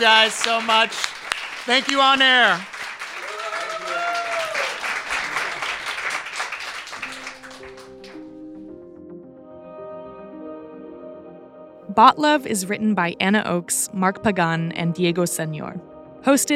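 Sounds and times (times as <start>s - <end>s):
speech: 0.0s - 2.8s, 12.0s - 16.5s
crowd clapping and cheering: 0.0s - 8.6s
whooping voices: 2.4s - 5.0s
soft music with sustained tones: 5.8s - 16.5s.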